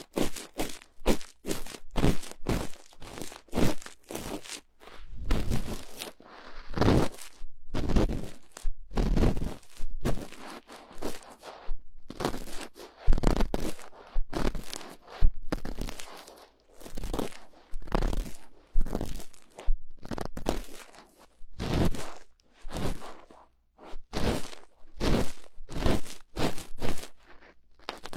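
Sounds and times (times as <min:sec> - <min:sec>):
cotton swab cleaning an ear: 0:00.0 - 0:28.1.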